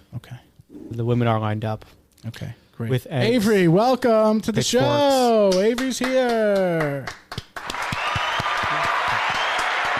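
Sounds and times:
speech: 1.0 - 7.3
audience applause for a show guest: 7.3 - 9.9.

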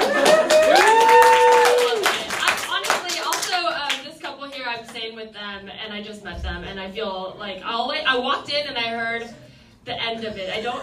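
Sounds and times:
person whooping: 0.0 - 2.1
audience applause: 0.0 - 3.5
speech: 6.3 - 10.8.

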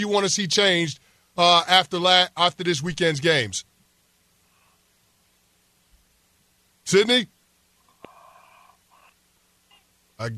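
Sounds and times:
speech: 0.0 - 3.7, 6.9 - 7.3, 10.2 - 10.3
heavy wheezy breathing over a telephone line on a sports call-in show: 8.0 - 9.0.

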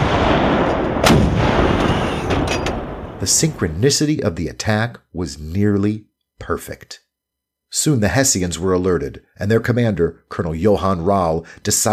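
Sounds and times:
artillery fire during an attack on Hessian troops: 0.0 - 3.6
heavy artillery blast: 0.0 - 3.9
rumbling din of battle: 0.0 - 3.9
speech: 3.2 - 7.0, 7.7 - 11.9.

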